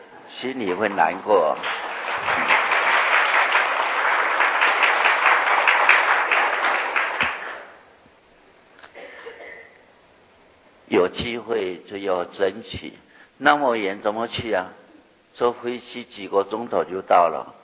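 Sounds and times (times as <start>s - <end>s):
speech: 0.3s - 2.6s, 11.1s - 14.8s, 15.4s - 17.6s
audience applause: 0.6s - 7.8s.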